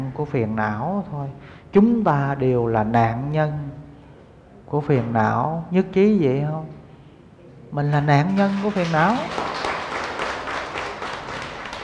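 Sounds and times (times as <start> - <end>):
speech: 0.2 - 3.8, 4.7 - 6.8, 7.7 - 9.5
audience clapping hard during a Buddhist dharma talk: 8.1 - 11.8.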